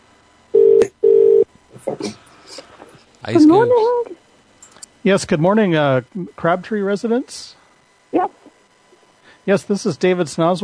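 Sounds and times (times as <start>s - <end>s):
telephone call ringing out: 0.6s - 1.5s
speech: 3.2s - 4.2s, 5.0s - 8.4s, 9.5s - 10.6s
voice talking on the phone line: 3.4s - 4.1s.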